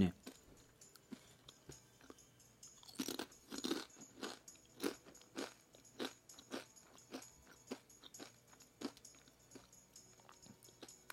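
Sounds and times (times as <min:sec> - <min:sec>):
crunchy triangular orange Dontaco snack chips being eaten: 0:02.8 - 0:09.3.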